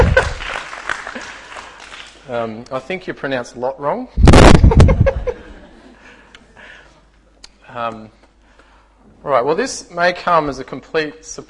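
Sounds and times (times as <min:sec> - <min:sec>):
laughter: 0:00.0 - 0:01.4, 0:04.6 - 0:06.1
audience applause: 0:00.0 - 0:02.2
speech: 0:02.3 - 0:05.2, 0:07.7 - 0:08.2, 0:09.2 - 0:11.4.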